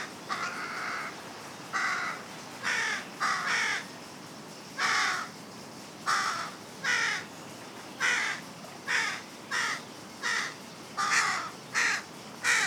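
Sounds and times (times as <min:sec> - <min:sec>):
Carrion crow Corvus corone giving harsh caws: 0:00.3 - 0:01.1, 0:01.8 - 0:03.9, 0:04.8 - 0:05.3, 0:06.1 - 0:07.2, 0:08.0 - 0:12.6.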